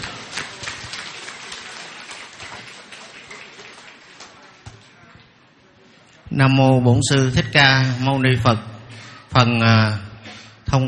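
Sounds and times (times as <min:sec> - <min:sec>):
applause at a Buddhist inauguration ceremony: 0:00.0 - 0:05.0
speech: 0:06.4 - 0:08.7, 0:09.4 - 0:10.1.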